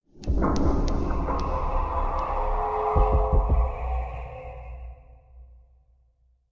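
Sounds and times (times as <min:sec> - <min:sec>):
Minecraft cave ambience: 0:00.1 - 0:05.1.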